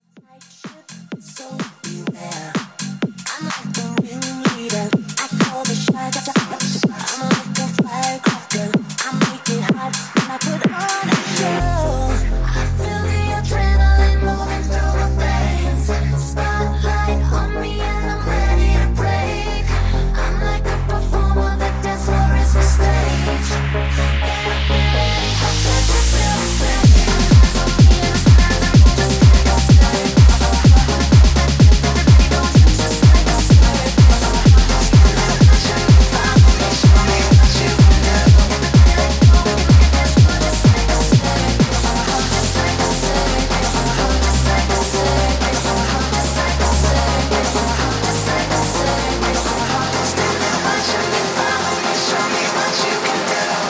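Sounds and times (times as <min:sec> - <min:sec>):
pop track: 0:00.0 - 0:53.6.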